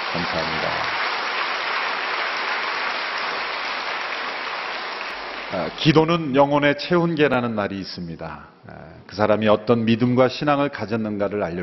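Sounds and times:
audience applause: 0.0s - 6.0s
speech: 0.1s - 1.0s, 5.5s - 11.6s.

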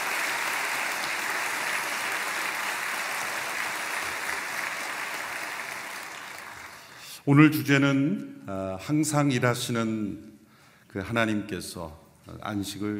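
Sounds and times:
audience applause: 0.0s - 7.0s
speech: 7.2s - 10.3s, 10.9s - 12.9s.

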